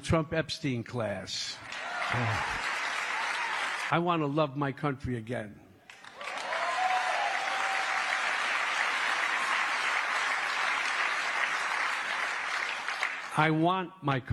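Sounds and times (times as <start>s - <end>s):
speech: 0.0s - 2.7s, 3.9s - 5.6s, 13.4s - 14.3s
audience clapping: 1.6s - 3.9s, 5.9s - 13.6s.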